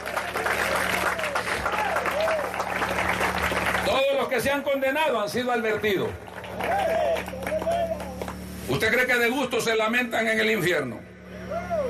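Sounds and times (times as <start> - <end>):
audience applause: 0.0 - 4.4, 5.7 - 8.4
speech: 4.4 - 7.5, 8.7 - 11.1.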